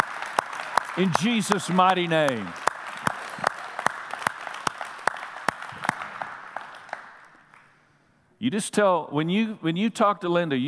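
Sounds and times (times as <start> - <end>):
audience clapping: 0.0 - 7.8
speech: 1.0 - 2.6, 8.4 - 10.6.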